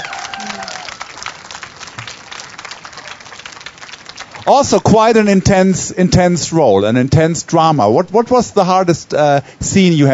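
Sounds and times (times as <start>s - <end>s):
cheering voices: 0.0s - 1.4s
audience applauding: 0.0s - 5.0s
speech: 4.5s - 10.1s.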